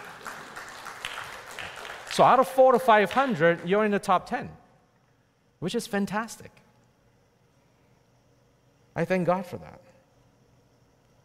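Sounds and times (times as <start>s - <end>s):
audience clapping: 0.0s - 4.0s
speech: 2.2s - 4.6s, 5.6s - 6.6s, 9.0s - 9.8s.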